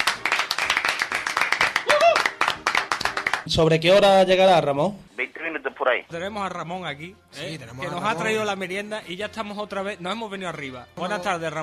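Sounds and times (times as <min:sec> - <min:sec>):
audience applause: 0:00.0 - 0:03.5
speech: 0:03.5 - 0:05.0, 0:05.8 - 0:11.6.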